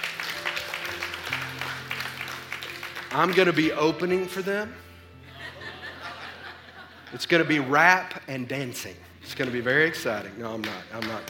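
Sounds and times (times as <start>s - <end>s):
audience clapping: 0.0s - 4.3s, 9.3s - 11.2s
speech: 3.1s - 4.9s, 7.1s - 11.2s
laughter: 5.2s - 7.9s.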